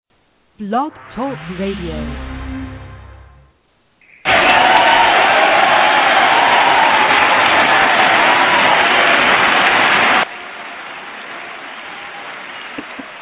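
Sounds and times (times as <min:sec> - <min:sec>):
speech: 0:00.6 - 0:02.3
canned live studio audience cheering and applause: 0:04.3 - 0:12.8.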